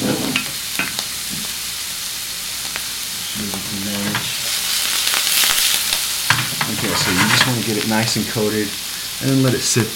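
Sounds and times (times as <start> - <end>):
vegetables sizzling and frying in hot oil: 0.0 - 9.9
clinks and scrapes of stirring: 6.3 - 7.6
speech: 7.5 - 9.9.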